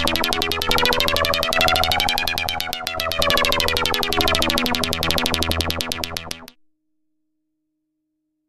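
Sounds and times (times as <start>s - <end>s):
LFO synth modulation sweep: 0.0s - 6.5s.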